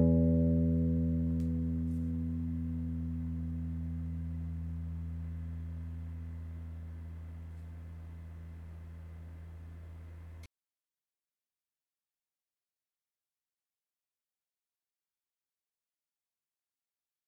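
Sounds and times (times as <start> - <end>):
electric guitar sixth string E plucked for tuning: 0.0 - 10.4.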